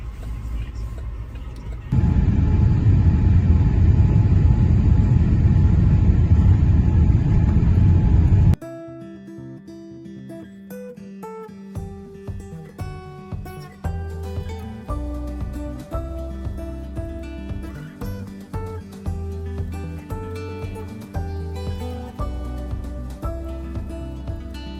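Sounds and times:
airport aircraft low rumble: 0:00.0 - 0:08.6
music: 0:08.6 - 0:24.7.

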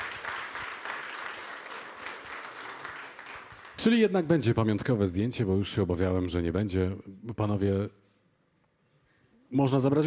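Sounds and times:
audience applause at a Polish award ceremony: 0:00.0 - 0:04.0
speech: 0:03.8 - 0:08.0, 0:09.5 - 0:10.0.

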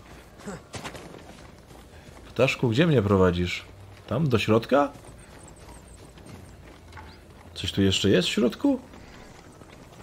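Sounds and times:
horse hooves clip-clopping: 0:00.0 - 0:10.0
speech: 0:00.4 - 0:00.8, 0:02.4 - 0:05.0, 0:07.6 - 0:08.9.

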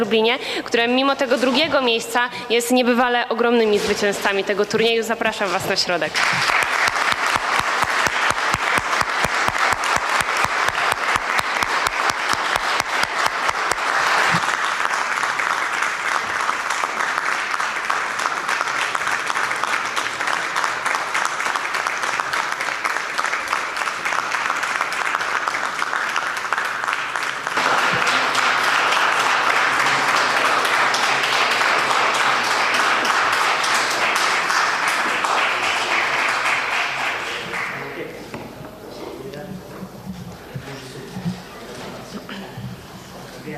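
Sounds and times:
speech: 0:00.0 - 0:06.6
applause for a second-place high school team from Lublin at a school tournament: 0:06.1 - 0:38.1.

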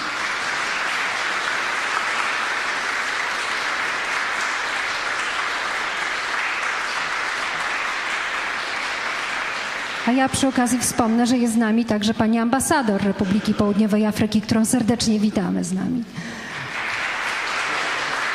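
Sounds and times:
audience applause: 0:00.0 - 0:10.8, 0:16.2 - 0:18.3
speech: 0:10.1 - 0:16.4.

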